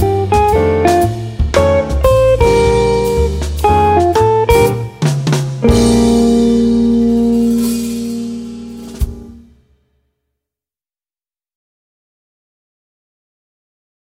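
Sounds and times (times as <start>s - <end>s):
jazz guitar: 0.0s - 9.6s.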